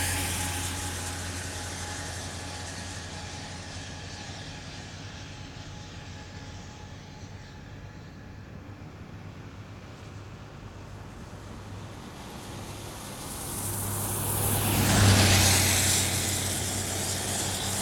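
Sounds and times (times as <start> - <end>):
cars in a traffic jam: 0.0 - 6.0, 9.8 - 17.7.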